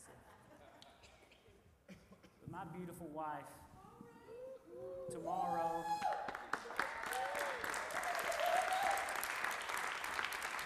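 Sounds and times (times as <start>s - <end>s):
speech: 2.5s - 3.7s, 4.8s - 6.3s
audience applause: 6.0s - 10.6s.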